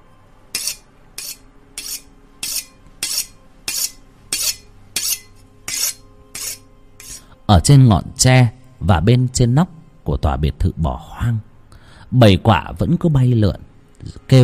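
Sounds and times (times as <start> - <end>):
knife being sharpened: 0.5 - 7.3
speech: 7.5 - 11.5, 12.1 - 14.4.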